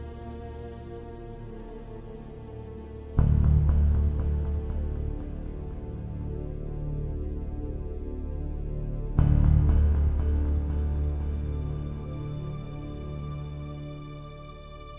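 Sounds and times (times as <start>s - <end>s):
sequenced bass hits: 3.2s - 7.6s, 9.2s - 13.4s.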